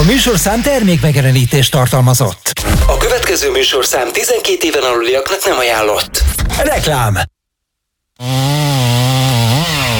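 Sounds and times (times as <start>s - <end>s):
chainsaw cutting down a giant pine tree in a neighbours' yard: 0.0s - 1.1s, 8.2s - 9.9s
speech: 0.1s - 7.4s, 8.2s - 9.0s.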